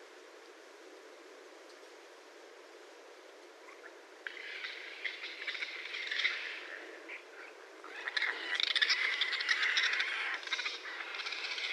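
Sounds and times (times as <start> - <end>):
raccoon harsh squawks and chatters: 3.8 - 11.7.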